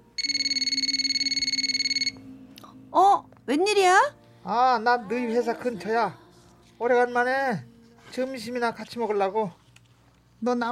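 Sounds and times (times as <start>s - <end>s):
telephone ringing with rapid electronic trill: 0.2s - 2.2s
speech: 3.0s - 6.2s, 6.8s - 9.6s, 10.4s - 10.7s.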